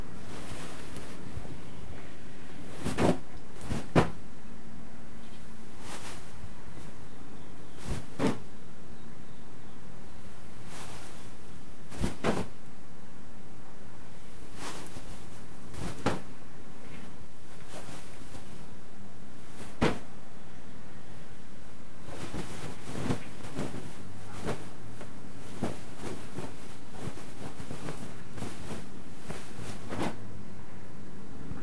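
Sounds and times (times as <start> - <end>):
pillow throw: 0.1 - 1.7, 2.5 - 4.2, 5.6 - 7.0, 7.8 - 8.5, 10.4 - 12.6, 14.4 - 16.4, 17.5 - 18.7, 19.4 - 20.1, 22.0 - 30.3.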